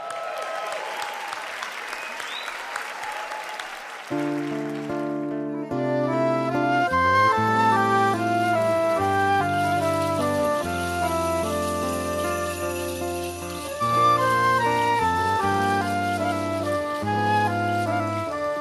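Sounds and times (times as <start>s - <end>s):
crowd applause: 0.0s - 18.5s
accordion-like music: 4.2s - 18.5s.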